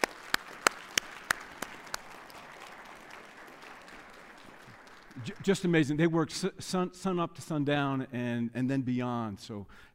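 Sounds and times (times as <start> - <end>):
hand claps: 0.0 - 5.8
speech: 5.2 - 9.9.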